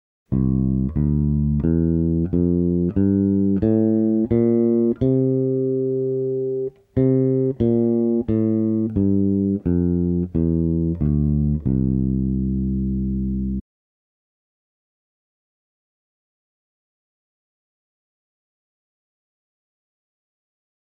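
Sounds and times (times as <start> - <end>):
mixolydian mode music: 0.3 - 13.6.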